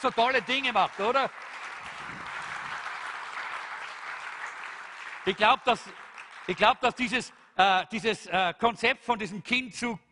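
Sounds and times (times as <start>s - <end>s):
speech: 0.0s - 1.6s, 5.2s - 10.0s
audience applause: 0.0s - 7.2s.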